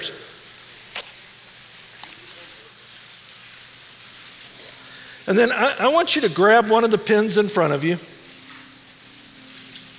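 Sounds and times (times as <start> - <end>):
steady low hiss: 0.0 - 9.9
perforated paper tearing: 0.9 - 2.7
speech: 5.3 - 8.1.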